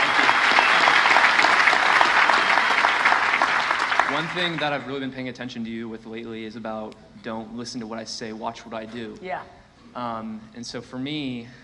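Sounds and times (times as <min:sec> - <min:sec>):
audience applause: 0:00.0 - 0:04.9
speech: 0:04.1 - 0:11.6.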